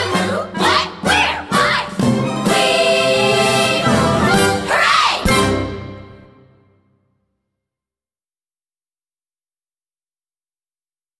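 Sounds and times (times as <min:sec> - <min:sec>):
reprise guided vocal: 0:00.0 - 0:06.1.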